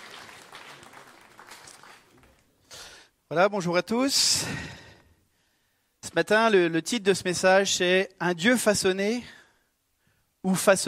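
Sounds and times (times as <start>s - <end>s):
audience applauding and cheering: 0.0s - 2.5s
speech: 3.3s - 4.8s, 6.2s - 9.4s, 10.4s - 10.8s.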